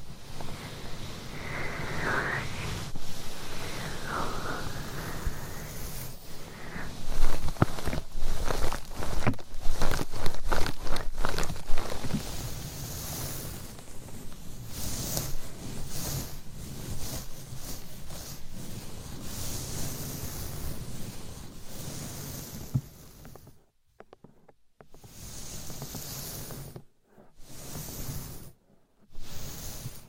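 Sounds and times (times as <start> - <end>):
steady soft rubbing: 0.0 - 23.6, 24.2 - 30.0
long nails scratching and tapping on a binaural mic: 7.1 - 12.4, 23.2 - 26.6.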